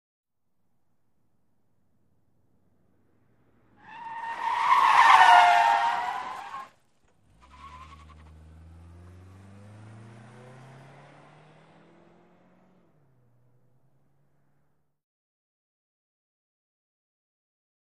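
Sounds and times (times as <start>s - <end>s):
sedan skidding: 3.6s - 12.2s.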